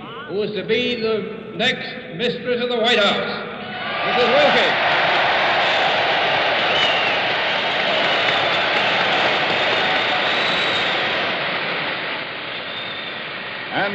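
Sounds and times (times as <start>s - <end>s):
speech: 0.3s - 4.8s
convention crowd cheering and applauding: 3.7s - 13.7s.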